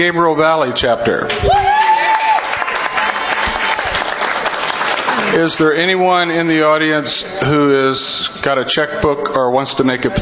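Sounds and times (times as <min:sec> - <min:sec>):
speech: 0:00.0 - 0:01.7, 0:05.2 - 0:10.2
audience applause at an organization's chapter meeting: 0:01.6 - 0:05.7.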